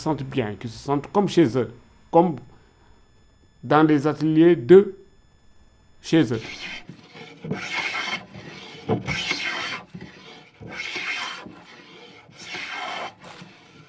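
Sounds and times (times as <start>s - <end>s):
speech: 0.0s - 2.5s, 3.6s - 5.0s, 6.0s - 7.9s, 8.9s - 9.4s
wood being rubbed smooth in a workshop: 6.3s - 13.8s.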